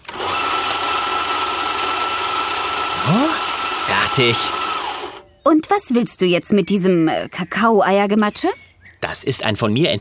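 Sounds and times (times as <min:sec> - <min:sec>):
electric kitchen mixer motor whirring: 0:00.0 - 0:05.2
speech: 0:04.1 - 0:04.6, 0:05.6 - 0:09.9.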